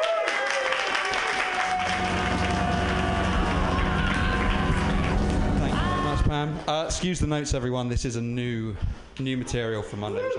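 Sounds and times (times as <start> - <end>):
crowd clapping: 0.0 - 6.7
speech: 6.4 - 10.3.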